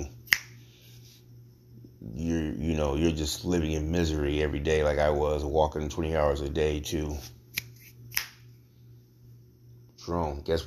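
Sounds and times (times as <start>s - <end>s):
finger snap: 0.0s - 0.8s, 7.5s - 8.5s
low steady hum: 0.0s - 10.6s
speech: 2.6s - 7.4s, 10.1s - 10.6s.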